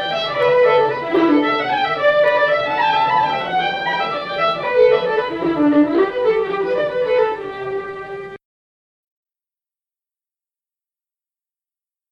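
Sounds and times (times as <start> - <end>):
pitched up Sliabh Luachra reels: 0.0 - 8.4.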